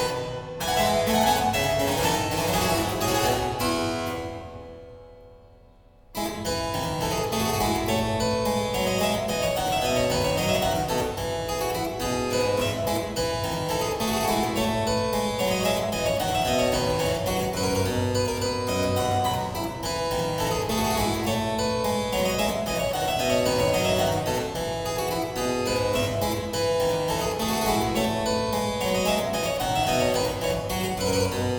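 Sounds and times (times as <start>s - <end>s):
harpsichord playing a fugue: 0.0s - 5.0s, 6.2s - 31.5s
organ playing a fugue: 7.2s - 31.5s.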